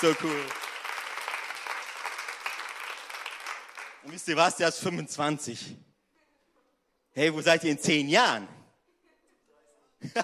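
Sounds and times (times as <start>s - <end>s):
speech: 0.0s - 0.6s, 4.1s - 5.9s, 7.2s - 8.6s, 10.0s - 10.2s
audience applause: 0.0s - 4.3s.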